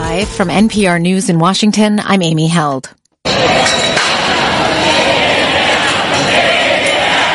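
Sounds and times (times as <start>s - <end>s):
speech: 0.2s - 3.9s
large crowd chanting outdoors: 3.3s - 7.3s
people shouting: 3.3s - 7.3s.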